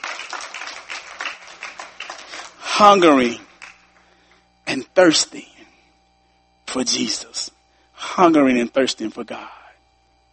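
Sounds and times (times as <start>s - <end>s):
church congregation clapping in praise at the close of a sermon: 0.0s - 4.4s
speech: 2.8s - 3.4s, 4.7s - 5.5s, 6.8s - 7.6s, 8.2s - 9.6s.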